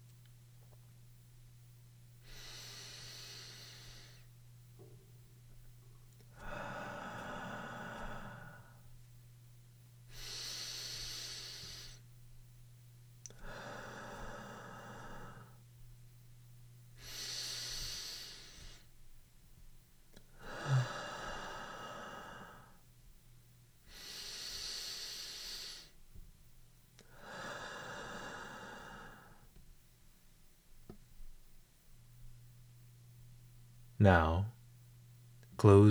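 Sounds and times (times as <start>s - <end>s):
low steady hum: 0.0s - 35.8s
slow faint breathing in and out: 2.2s - 5.0s, 6.3s - 9.0s, 10.1s - 12.1s, 13.3s - 15.7s, 17.0s - 19.0s, 20.2s - 22.9s, 23.8s - 26.1s, 27.0s - 29.6s
speech: 34.0s - 34.5s, 35.6s - 35.8s.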